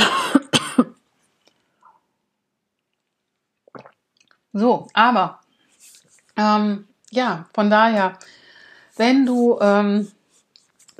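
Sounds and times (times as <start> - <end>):
person clearing their throat: 0.0 - 1.0
speech: 4.6 - 5.4, 6.4 - 8.4, 9.0 - 10.2.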